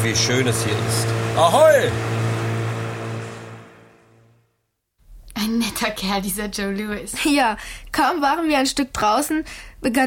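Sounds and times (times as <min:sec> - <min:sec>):
speech: 0:00.0 - 0:02.2, 0:05.4 - 0:10.0
surf breaking on the sea heard from a boat: 0:00.0 - 0:04.0
steady low hum: 0:00.0 - 0:04.5.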